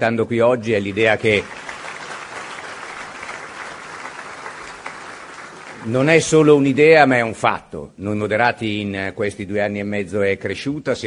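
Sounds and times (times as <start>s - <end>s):
speech: 0.0s - 1.6s, 5.8s - 11.0s
audience applause at a political party gathering: 0.8s - 7.0s.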